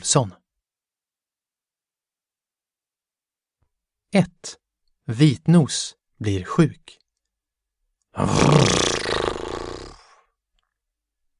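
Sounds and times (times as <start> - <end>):
speech: 0.0 - 0.4, 4.1 - 7.0, 8.2 - 9.1
human voice imitating a horse whinny: 8.2 - 10.2.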